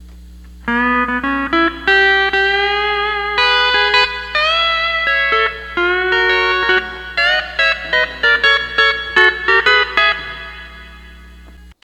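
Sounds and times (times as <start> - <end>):
12-string lap guitar playing: 0.6 - 11.8.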